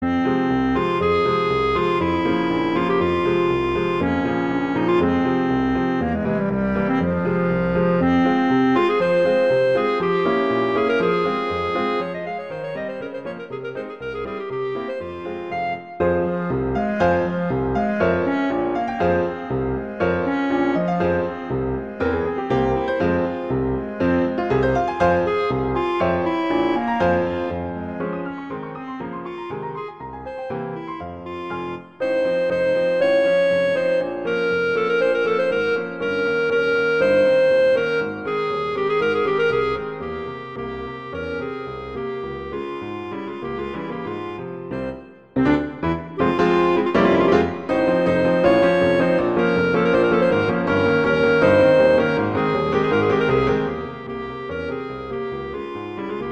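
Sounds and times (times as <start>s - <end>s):
allegro classical piece: 0.0s - 56.3s.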